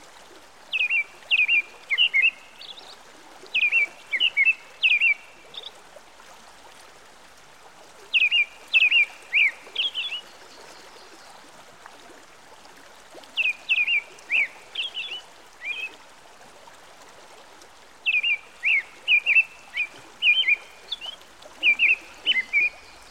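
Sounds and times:
American robin song by a stream: 0.7s - 2.9s, 3.5s - 5.7s, 8.1s - 10.3s, 13.4s - 16.0s, 18.0s - 23.0s.

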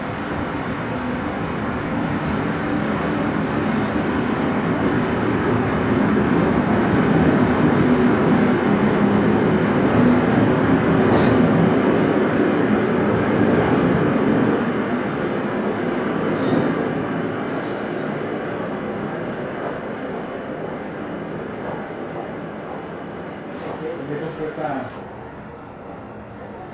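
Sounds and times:
train at station: 0.0s - 26.7s.

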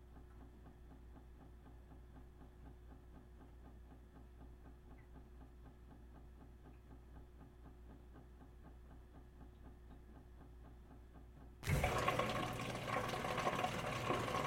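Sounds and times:
dishwasher running a wash cycle: 11.6s - 14.4s.

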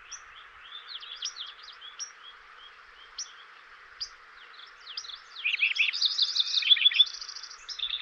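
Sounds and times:
Lincoln's Sparrow singing bubbling trills: 0.0s - 8.0s.

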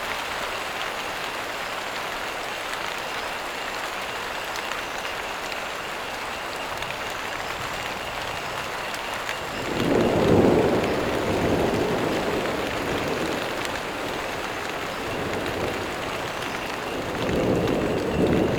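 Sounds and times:
frogs croaking: 0.2s - 18.5s
crickets chirping: 2.9s - 18.5s
storm approaching a marsh: 6.5s - 18.5s.

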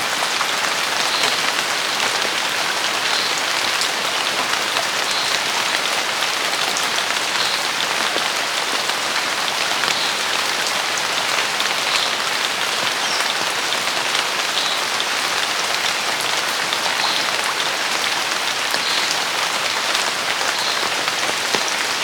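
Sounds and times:
heavy summer rain: 0.0s - 22.0s.

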